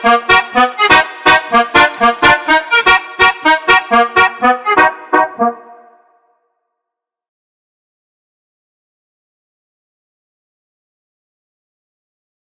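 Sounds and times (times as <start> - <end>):
Brazilian funk bounce beat: 0.0 - 5.8.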